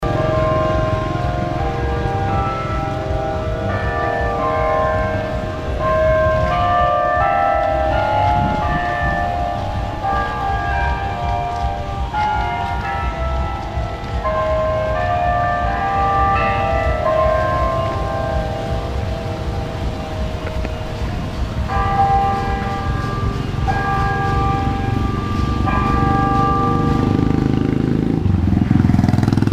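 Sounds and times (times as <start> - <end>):
bell in Mananjary ringing: 0.0 - 29.4.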